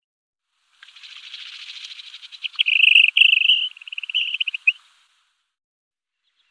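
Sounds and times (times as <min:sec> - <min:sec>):
Eurasian dotterel call of short sharp whistles: 0:02.5 - 0:04.8.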